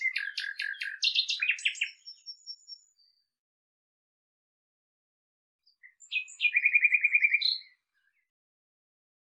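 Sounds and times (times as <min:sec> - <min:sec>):
Common nightingale song with chirps and rattling series: 0:00.0 - 0:02.9, 0:05.7 - 0:08.2.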